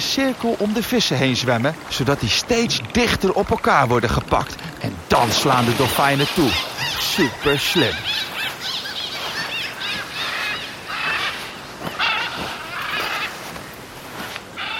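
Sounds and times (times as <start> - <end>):
speech: 0.0 - 8.3
macaw parrots squawking: 5.3 - 13.6, 14.6 - 14.7.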